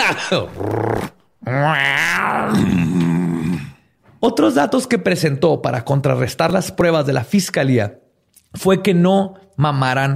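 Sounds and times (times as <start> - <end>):
speech: 0.1 - 3.6, 4.2 - 10.1
person imitating a purr: 0.4 - 3.8.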